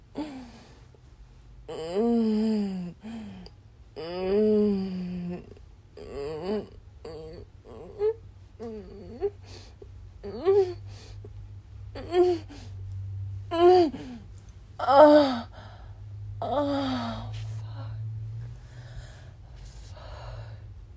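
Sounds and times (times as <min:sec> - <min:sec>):
person moaning: 0:01.7 - 0:09.4, 0:10.2 - 0:11.2, 0:11.9 - 0:12.8, 0:13.5 - 0:18.1
person whimpering: 0:01.7 - 0:11.3, 0:12.0 - 0:12.8, 0:13.5 - 0:15.8, 0:16.4 - 0:18.0.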